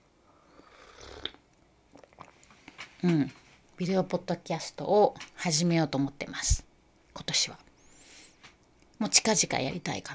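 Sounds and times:
person sipping morning coffee: 0.5 - 3.0
speech: 3.0 - 7.7, 9.0 - 10.1.

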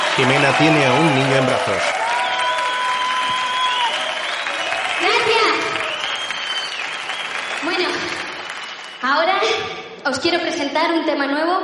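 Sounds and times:
concert audience applauding enthusiastically: 0.0 - 9.3
speech: 0.2 - 2.0, 9.0 - 11.6.

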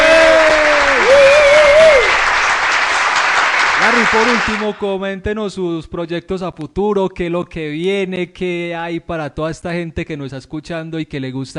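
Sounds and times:
audience applause: 0.0 - 4.8
speech: 4.1 - 11.5.

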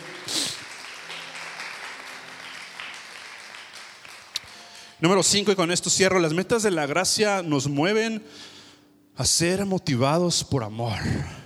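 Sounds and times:
church audience applause: 0.0 - 5.0
speech: 5.0 - 8.6, 9.2 - 11.4.

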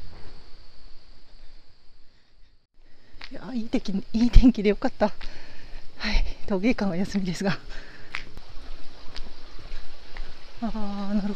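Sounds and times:
speech: 3.3 - 7.9, 10.6 - 11.3
rushing water: 7.0 - 11.3.

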